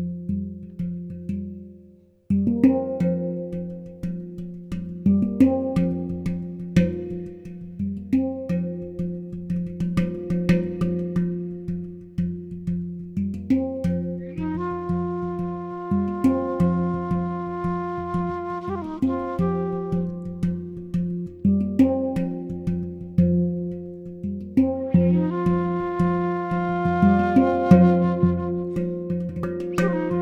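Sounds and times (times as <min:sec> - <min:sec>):
hang drum: 0:02.3 - 0:30.2
alto flute: 0:14.2 - 0:21.0, 0:24.8 - 0:30.2.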